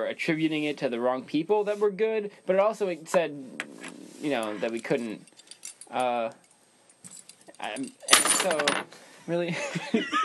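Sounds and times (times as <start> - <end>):
speech: 0.0 - 5.3, 5.9 - 6.4, 7.6 - 10.2
keys being set down on a table: 4.7 - 6.0, 7.0 - 8.8
bursts of laughter: 9.5 - 10.2.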